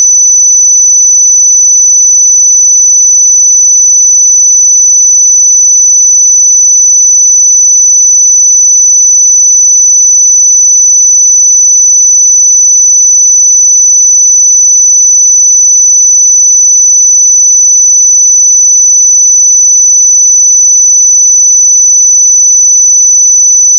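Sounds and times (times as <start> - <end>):
5992 Hz pure sine tone: 0.0 - 23.7.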